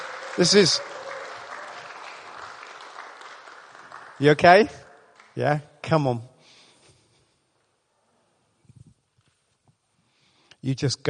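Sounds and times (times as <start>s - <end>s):
audience applause: 0.0s - 5.5s
speech: 0.4s - 0.9s, 4.2s - 4.8s, 5.4s - 6.3s, 10.6s - 11.0s.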